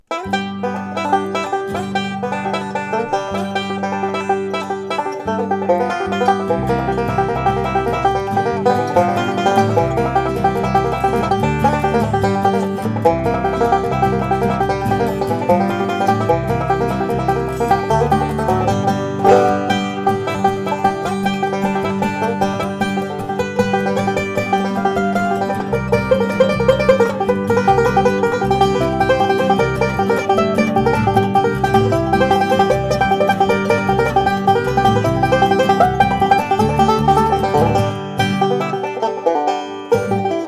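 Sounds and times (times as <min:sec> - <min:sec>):
banjo picking: 0:00.0 - 0:40.4.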